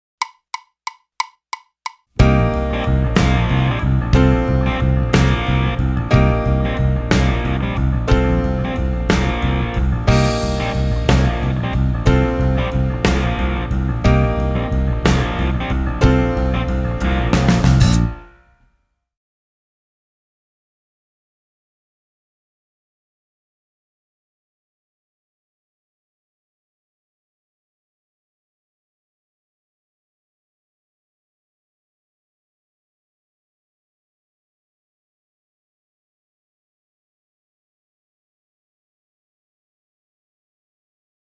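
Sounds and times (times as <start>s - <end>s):
three-four minor blues music: 2.2s - 18.3s.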